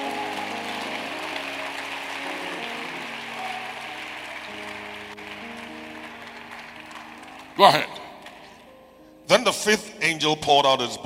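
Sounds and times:
crowd clapping: 0:00.0 - 0:08.8
sustained organ or keyboard chords: 0:00.0 - 0:10.0
speech: 0:07.6 - 0:08.0, 0:09.3 - 0:11.0.

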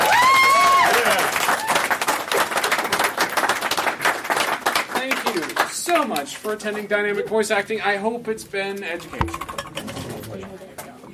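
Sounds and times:
audience applause: 0:00.0 - 0:05.7
speech: 0:06.1 - 0:09.5.

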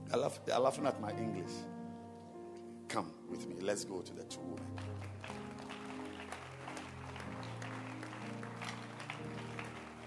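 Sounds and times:
speech: 0:00.1 - 0:01.8, 0:02.9 - 0:05.8
church congregation clapping for two women: 0:04.5 - 0:10.0.

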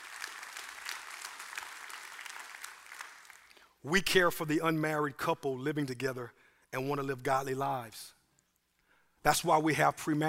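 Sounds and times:
crowd applause: 0:00.0 - 0:03.6
speech: 0:03.8 - 0:08.2, 0:09.2 - 0:10.2.

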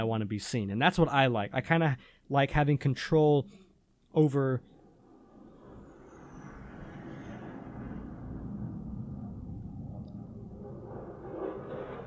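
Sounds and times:
speech: 0:00.0 - 0:03.6, 0:04.2 - 0:04.7
fighter jets flying above apartment: 0:04.6 - 0:12.0.

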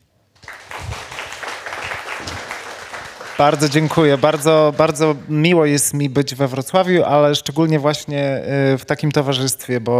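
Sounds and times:
live audience applause: 0:00.4 - 0:05.3
speech: 0:03.4 - 0:09.9.

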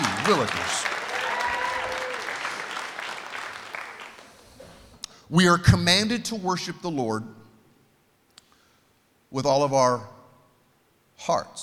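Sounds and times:
audience clapping: 0:00.0 - 0:04.5
speech: 0:00.3 - 0:00.9, 0:05.3 - 0:07.4, 0:09.3 - 0:10.2, 0:11.2 - 0:11.6.

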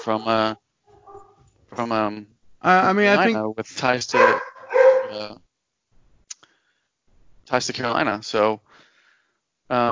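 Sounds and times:
speech: 0:00.0 - 0:00.6, 0:01.7 - 0:04.5, 0:05.1 - 0:05.4, 0:07.5 - 0:08.6, 0:09.7 - 0:09.9
dog at home barking: 0:00.9 - 0:01.5, 0:04.1 - 0:05.3.

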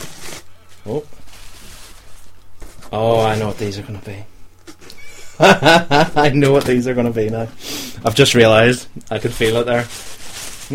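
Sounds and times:
faint rustling of packaging: 0:00.0 - 0:03.9, 0:09.1 - 0:10.7
speech: 0:00.8 - 0:01.2, 0:02.9 - 0:04.4, 0:05.4 - 0:10.1.

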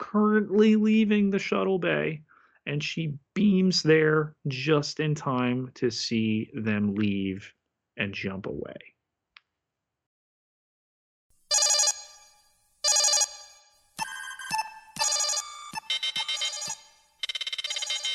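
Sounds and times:
speech: 0:00.1 - 0:08.9
alarm: 0:11.5 - 0:18.1.

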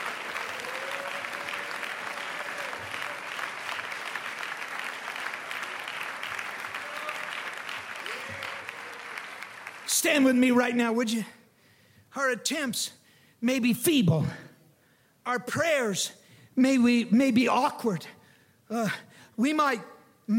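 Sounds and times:
audience clapping hands: 0:00.0 - 0:10.8
speech: 0:10.0 - 0:11.4, 0:12.2 - 0:14.4, 0:15.3 - 0:20.3.

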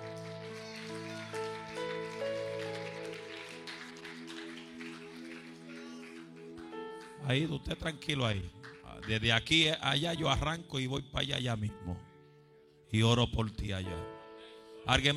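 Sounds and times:
audience applauding: 0:00.0 - 0:09.5
speech: 0:07.3 - 0:12.1, 0:12.9 - 0:14.2, 0:14.8 - 0:15.1.

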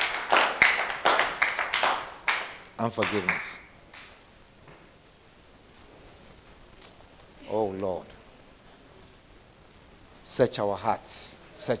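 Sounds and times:
audience clapping hands: 0:00.0 - 0:04.9
speech: 0:02.8 - 0:03.7, 0:07.5 - 0:08.2, 0:10.3 - 0:11.7.

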